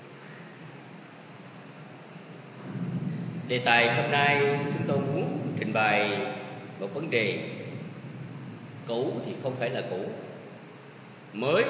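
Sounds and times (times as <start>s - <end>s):
rainstorm and wind noise on recording: 2.3s - 11.6s
speech: 3.5s - 7.6s, 8.9s - 10.2s, 11.3s - 11.6s.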